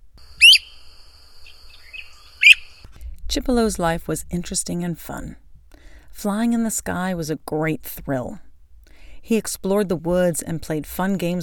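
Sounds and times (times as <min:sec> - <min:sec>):
faint chirps: 0:00.2 - 0:02.9
flycatcher whistled calls: 0:00.4 - 0:00.8, 0:01.5 - 0:02.8
speech: 0:03.3 - 0:05.4, 0:06.2 - 0:08.4, 0:09.2 - 0:11.4.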